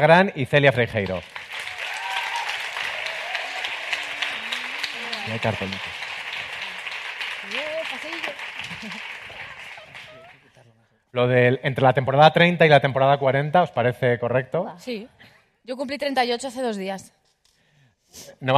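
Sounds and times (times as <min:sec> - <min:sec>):
speech: 0:00.0 - 0:01.4, 0:05.3 - 0:06.0, 0:07.5 - 0:09.1, 0:11.1 - 0:17.2, 0:18.1 - 0:18.5
audience applause: 0:00.8 - 0:10.5
crowd cheering and whooping: 0:01.5 - 0:10.3.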